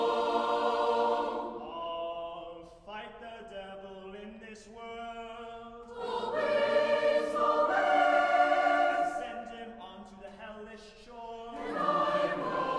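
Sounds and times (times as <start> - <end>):
choir singing: 0.0 - 2.5, 5.6 - 9.8, 11.5 - 12.7.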